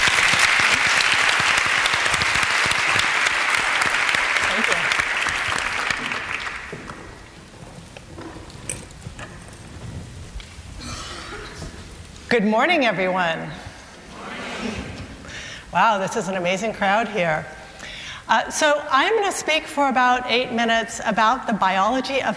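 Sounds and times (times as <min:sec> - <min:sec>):
audience applause: 0:00.0 - 0:07.4
speech: 0:12.4 - 0:13.6, 0:15.7 - 0:17.6, 0:18.3 - 0:22.3.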